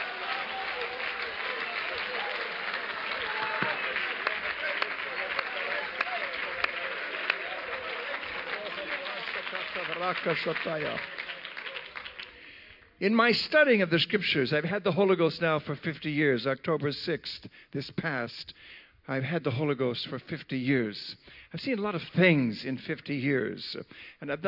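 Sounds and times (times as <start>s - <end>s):
audience clapping: 0.0s - 12.9s
speech: 10.1s - 11.2s, 13.0s - 24.4s.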